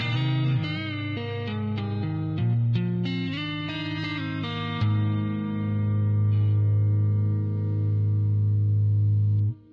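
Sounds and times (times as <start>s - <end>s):
electric guitar playing midwest emo: 0.0s - 9.7s.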